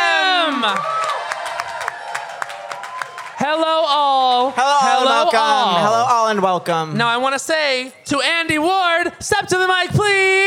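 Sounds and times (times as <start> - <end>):
loud whoop: 0.0 - 3.4
audience clapping and cheering as people are introduced at an event: 0.0 - 6.5
speech: 5.2 - 10.4.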